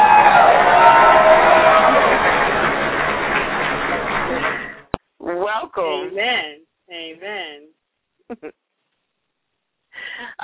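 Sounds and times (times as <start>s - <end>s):
audience applause: 0.0s - 4.9s
speech: 5.8s - 6.6s, 7.2s - 8.6s, 10.0s - 10.4s.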